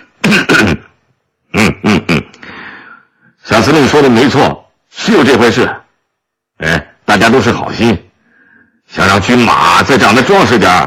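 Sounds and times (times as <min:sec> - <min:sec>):
factory director clearing his throat: 0:00.0 - 0:02.4
speech: 0:03.7 - 0:05.8, 0:06.6 - 0:08.0, 0:08.9 - 0:10.8.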